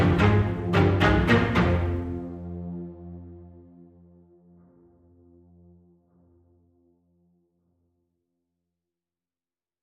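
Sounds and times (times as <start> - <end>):
strings: 0.0 - 6.3.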